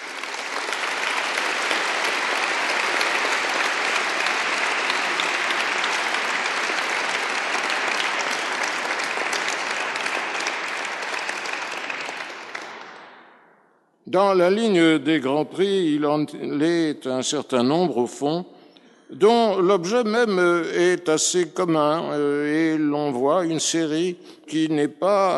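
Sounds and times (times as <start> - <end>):
large audience applause: 0.0 - 13.3
speech: 14.1 - 25.3.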